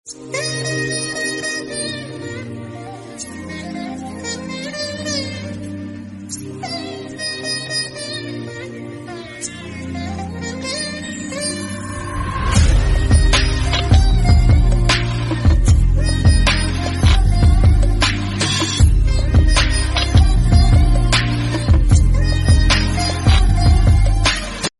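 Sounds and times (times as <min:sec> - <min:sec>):
veena background music: 0:00.1 - 0:24.7.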